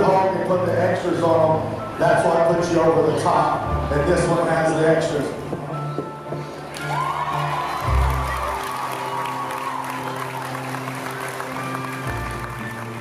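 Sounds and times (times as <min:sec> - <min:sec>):
speech: 0:00.4 - 0:06.1
audience cheering and applauding at an Iowa State Fair hog show: 0:06.6 - 0:13.0.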